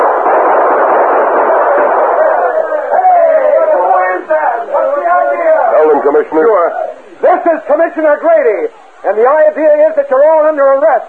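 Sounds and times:
gunfire in a radio western drama: 0.0s - 3.8s
voices shouting: 0.0s - 7.4s
speech: 6.2s - 6.8s, 7.4s - 11.0s.

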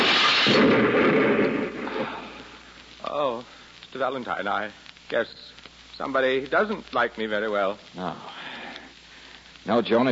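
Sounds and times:
hand grenade explosion: 0.0s - 2.5s
speech: 3.1s - 8.4s, 9.6s - 10.0s.

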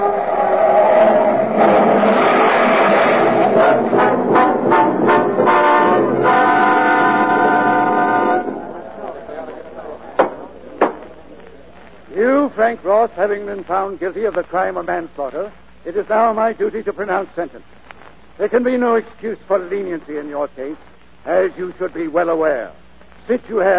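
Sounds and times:
car speeding downhill: 0.0s - 5.5s
horns blaring: 0.0s - 9.2s
sharp knocks: 10.2s - 11.2s
speech: 12.6s - 17.8s, 18.4s - 23.7s.

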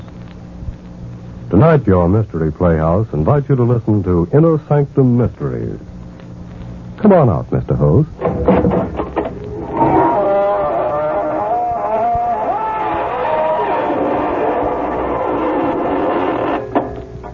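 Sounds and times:
speech: 1.5s - 5.9s, 7.0s - 9.0s
squeaking door creaking open: 8.2s - 17.3s.

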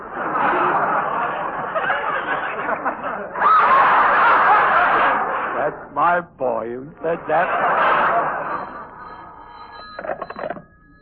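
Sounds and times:
laughter: 0.0s - 5.9s, 7.0s - 9.3s
speech: 6.1s - 8.7s
telephone bell ringing: 8.0s - 11.0s.

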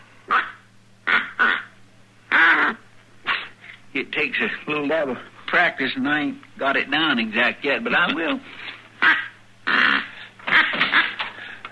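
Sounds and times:
faint steady hum: 0.0s - 11.6s
duck call blown: 0.3s - 1.7s, 2.3s - 3.6s, 9.0s - 11.3s
speech: 4.0s - 8.7s.

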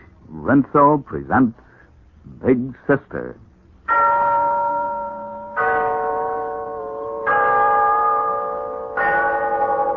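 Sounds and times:
speech: 0.4s - 1.6s, 2.4s - 3.4s
Glen Falls Town Hall clock bell chiming: 3.9s - 9.9s.

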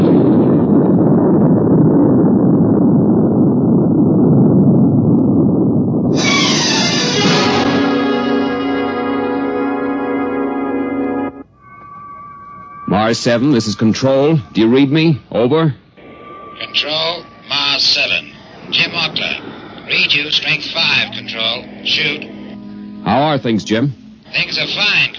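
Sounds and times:
rocket engines roaring at liftoff: 0.0s - 25.1s
speech: 13.1s - 15.8s, 16.6s - 18.1s, 19.9s - 22.3s, 23.0s - 25.1s.

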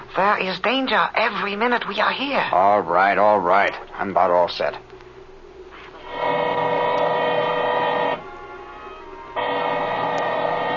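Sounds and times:
speech: 0.2s - 4.9s
drill running: 6.0s - 8.3s, 9.4s - 10.7s.

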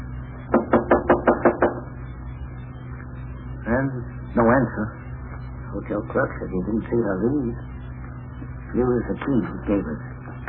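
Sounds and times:
knocking on a hotel room door: 0.5s - 1.8s
speech: 4.6s - 5.0s, 5.7s - 7.8s, 8.7s - 10.1s.

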